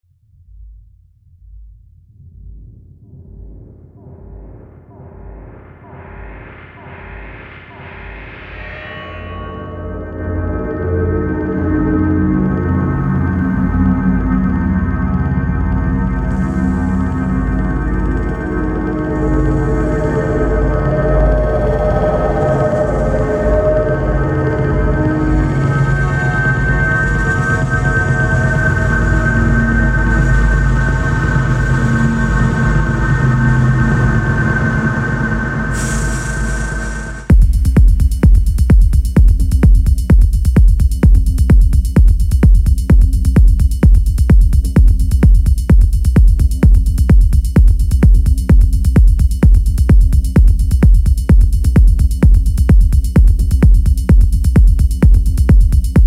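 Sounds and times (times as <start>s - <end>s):
techno music: 11.2s - 56.0s.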